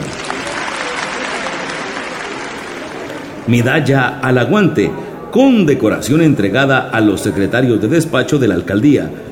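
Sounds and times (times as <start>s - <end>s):
audience applause: 0.0s - 3.5s
speech: 3.5s - 9.3s.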